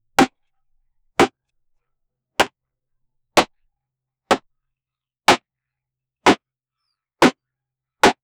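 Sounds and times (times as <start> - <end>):
man chopping a tree: 0.2 - 0.4, 1.2 - 1.4, 3.4 - 3.6, 6.2 - 6.4, 8.0 - 8.2.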